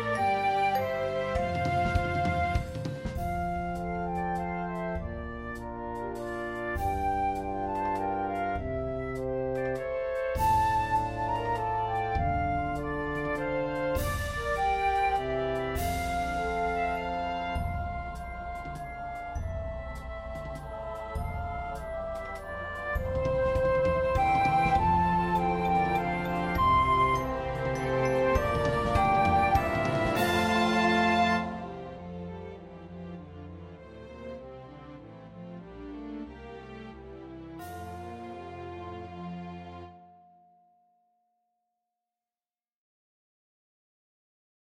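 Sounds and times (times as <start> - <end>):
flute melody: 0.0 - 33.8.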